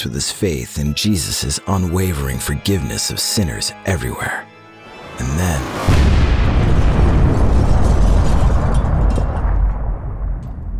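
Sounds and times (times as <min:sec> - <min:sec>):
speech: 0:00.0 - 0:04.5, 0:05.2 - 0:06.8
bomb explosion: 0:05.6 - 0:10.7.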